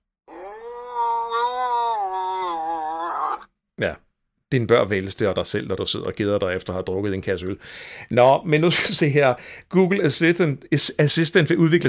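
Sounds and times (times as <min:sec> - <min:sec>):
wildcat yowling: 0:00.3 - 0:03.5
speech: 0:03.8 - 0:11.8.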